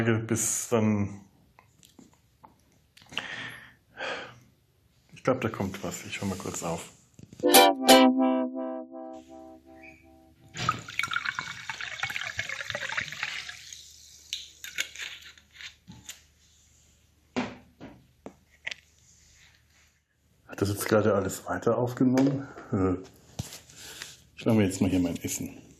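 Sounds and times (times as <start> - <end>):
speech: 0.0 - 1.3, 5.2 - 8.3, 20.6 - 23.2, 24.4 - 25.7
ringing tone: 7.4 - 10.3
hot water pouring into a glass: 10.6 - 14.4
dripping: 10.6 - 14.5.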